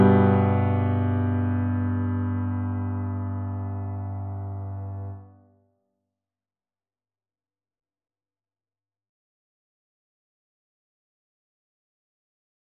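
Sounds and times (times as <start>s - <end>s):
double bass: 0.0s - 5.2s.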